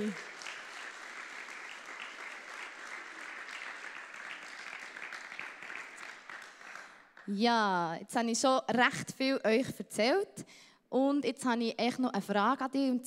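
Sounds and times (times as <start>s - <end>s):
speech: 0.0s - 0.3s, 7.3s - 13.0s
warm audience applause: 0.0s - 7.3s.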